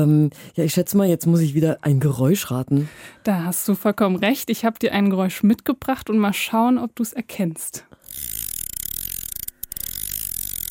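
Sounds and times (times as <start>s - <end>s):
speech: 0.0s - 8.3s
fishing rod reel being wound: 8.0s - 10.6s.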